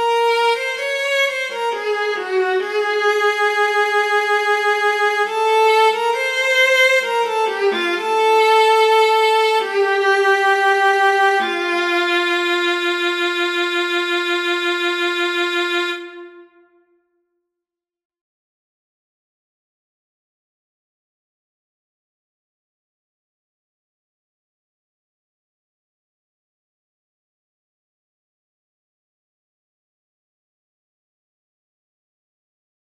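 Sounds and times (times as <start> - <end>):
viola and piano barcarolle: 0.1 - 16.2.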